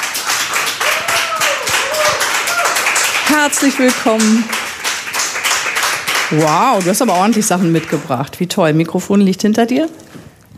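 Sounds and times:
crowd applauding: 0.0s - 8.3s
speech: 3.4s - 4.6s, 6.3s - 10.2s.

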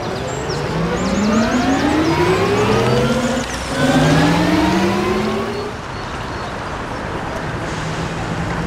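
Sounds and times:
electric car motors whining as vehicles pass: 0.0s - 5.8s
road noise: 0.0s - 8.6s.

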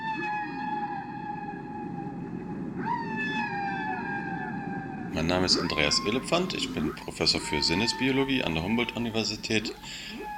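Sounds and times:
male whale mating song: 0.0s - 10.3s
low rumbling background: 0.4s - 10.3s
speech: 5.2s - 10.2s.

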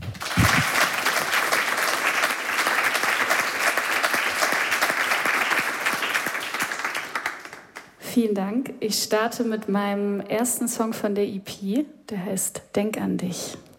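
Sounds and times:
audience applause: 0.0s - 7.9s
speech: 8.2s - 13.7s.

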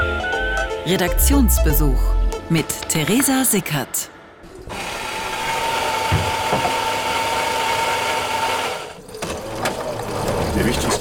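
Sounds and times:
speech: 0.8s - 4.2s, 10.6s - 10.9s
coffee machine running: 4.6s - 10.9s.

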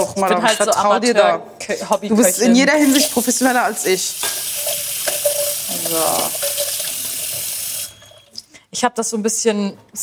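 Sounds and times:
speech: 0.2s - 4.8s, 5.9s - 6.6s, 8.7s - 10.0s
tap water running into a sink: 2.8s - 8.0s
faint drips and clinks: 2.9s - 8.5s.

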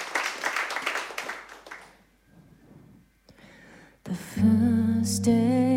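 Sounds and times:
audience applause: 0.0s - 2.0s
speech: 4.1s - 5.6s.

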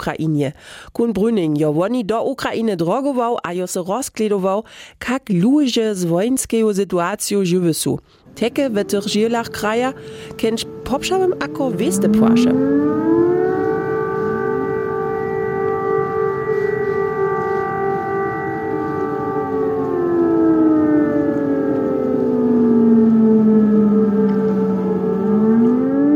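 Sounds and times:
speech: 0.0s - 13.1s
air raid alarm siren wailing in Ukraine: 8.1s - 26.1s.

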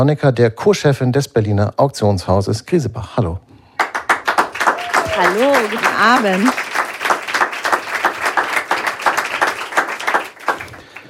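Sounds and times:
speech: 0.0s - 3.4s, 5.2s - 6.6s
audience applause: 3.8s - 11.0s.

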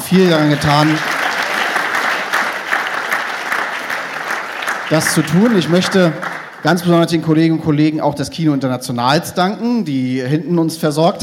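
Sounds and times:
audience applause: 0.0s - 7.2s
speech: 0.1s - 1.2s, 4.9s - 11.2s.

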